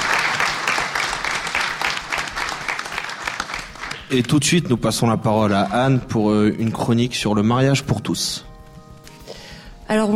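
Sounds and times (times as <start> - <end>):
audience applause: 0.0 - 4.3
speech: 4.1 - 8.5.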